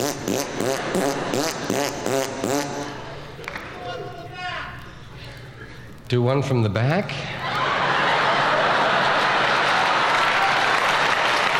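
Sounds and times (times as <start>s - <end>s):
person blowing a raspberry: 0.0s - 3.1s
speech: 6.1s - 7.4s
laughter: 7.3s - 11.0s.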